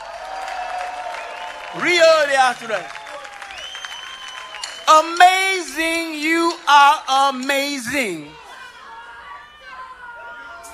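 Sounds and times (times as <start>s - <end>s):
audience applause: 0.0s - 7.4s
speech: 1.7s - 3.0s, 4.9s - 8.4s
man shouting: 4.9s - 8.4s.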